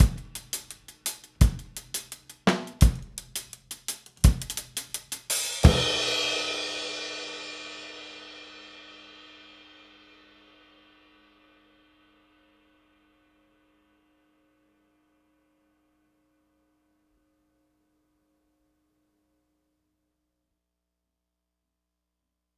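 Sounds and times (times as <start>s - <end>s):
70s analog funk drum ending: 0.0s - 6.6s.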